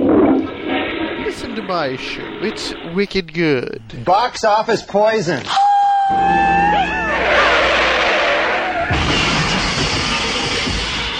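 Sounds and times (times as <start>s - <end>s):
car crash sound effect: 0.0s - 4.1s, 7.1s - 11.1s
speech: 1.6s - 7.6s.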